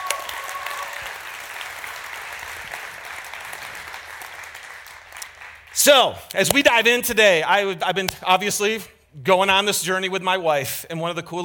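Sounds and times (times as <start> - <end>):
audience applause: 0.0 - 5.7
speech: 5.8 - 11.4.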